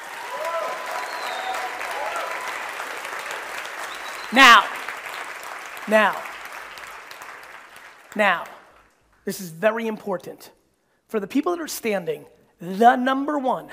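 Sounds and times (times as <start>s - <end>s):
audience applause: 0.0s - 8.9s
speech: 4.3s - 4.7s, 5.9s - 6.3s, 8.2s - 8.6s, 9.3s - 13.7s.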